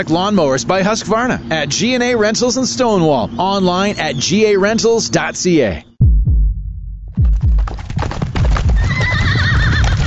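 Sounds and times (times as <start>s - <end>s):
speech: 0.0s - 5.9s
Clydesdale horse hooves clip-clopping: 7.2s - 10.0s
Clydesdale horse neighing: 8.7s - 10.0s.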